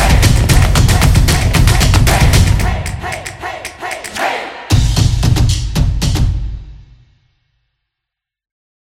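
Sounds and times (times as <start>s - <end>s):
upbeat drums: 0.0s - 7.1s.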